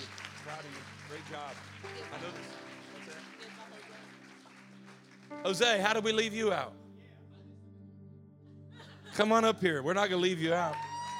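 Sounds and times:
audience hand clapping: 0:00.0 - 0:06.0, 0:10.6 - 0:11.1
speech: 0:00.6 - 0:03.6, 0:05.3 - 0:06.8, 0:09.2 - 0:10.9.

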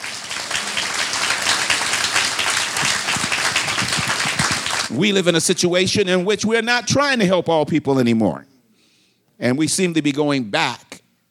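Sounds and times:
audience hand clapping: 0:00.0 - 0:05.0
speech: 0:04.9 - 0:08.5, 0:09.4 - 0:10.9.

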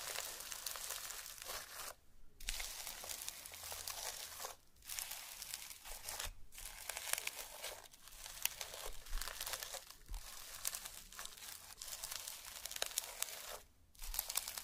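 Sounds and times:
dense crackly squishing and crinkling slime: 0:00.0 - 0:14.6.

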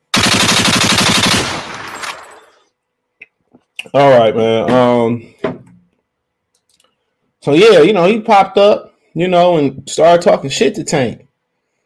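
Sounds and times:
machine-gun fire sound effect: 0:00.1 - 0:02.5
speech: 0:03.9 - 0:05.4, 0:07.4 - 0:11.3.

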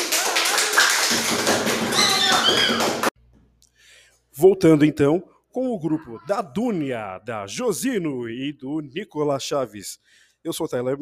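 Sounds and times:
applause: 0:00.0 - 0:03.1
speech: 0:04.4 - 0:10.9.

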